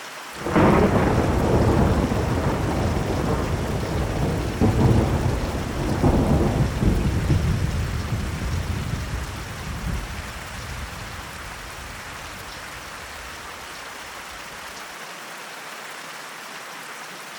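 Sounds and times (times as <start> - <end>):
thunderstorm: 0.4 - 13.3.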